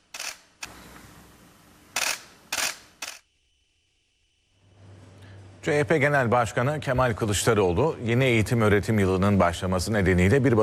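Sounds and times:
faint steady hum: 0.0s - 10.6s
camera shutters clicking at a photo session with teachers: 0.1s - 0.8s, 2.0s - 3.2s
speech: 5.6s - 10.6s.

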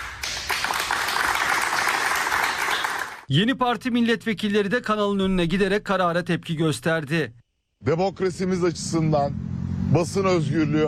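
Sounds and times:
Halk TV studio staff applauding in protest: 0.0s - 3.3s
speech: 3.3s - 10.8s.

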